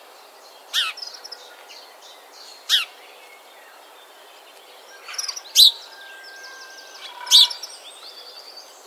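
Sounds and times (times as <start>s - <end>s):
house sparrow Passer domesticus giving loud rasping chirps: 5.0s - 8.4s.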